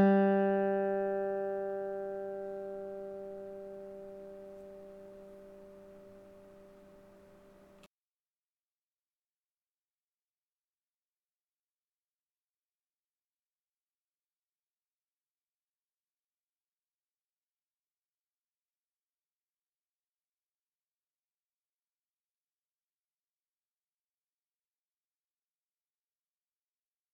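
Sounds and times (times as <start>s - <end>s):
acoustic guitar third string G being tuned: 0.0s - 7.8s.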